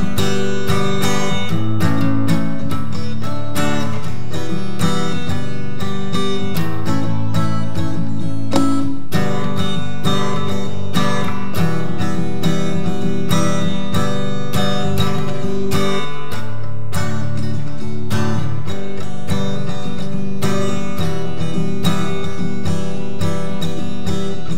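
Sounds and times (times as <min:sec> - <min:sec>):
guitar doodles: 0:00.0 - 0:24.5.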